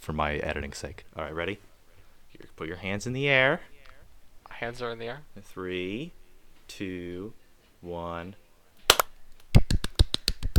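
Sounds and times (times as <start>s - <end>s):
speech: 0.0s - 1.7s, 2.3s - 3.7s, 4.5s - 8.4s
small group clapping: 8.9s - 10.5s.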